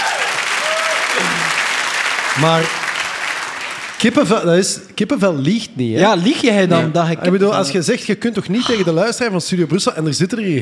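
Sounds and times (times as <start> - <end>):
audience applause: 0.0 - 4.4
speech: 2.4 - 2.8, 4.0 - 10.6.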